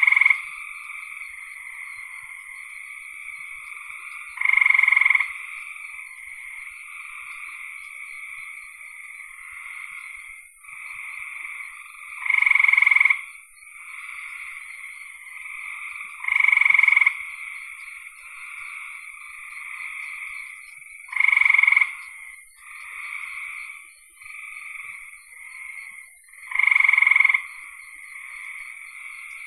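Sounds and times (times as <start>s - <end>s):
frog pulsed trill: 0.0s - 29.4s.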